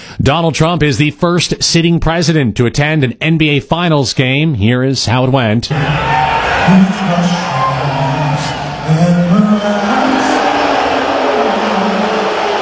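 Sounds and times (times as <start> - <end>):
speech: 0.2 - 7.5
arena crowd booing at Madison Square Garden: 5.7 - 12.5.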